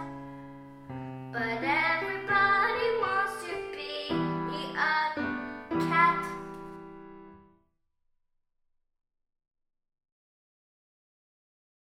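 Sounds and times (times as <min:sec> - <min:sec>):
piano: 0:00.0 - 0:07.6.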